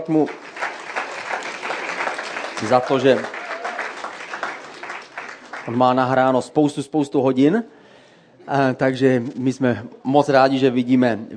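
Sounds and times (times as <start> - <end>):
speech: 0.0 - 0.6, 2.6 - 3.4, 5.6 - 7.8, 8.5 - 11.3
audience applause: 0.0 - 6.0.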